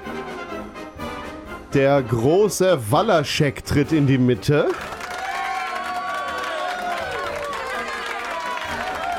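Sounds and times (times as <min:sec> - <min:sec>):
speech: 0:01.7 - 0:05.0
audience applause: 0:04.6 - 0:09.1
audience cheering: 0:04.7 - 0:09.1
overlapping crowd voices: 0:05.9 - 0:09.1.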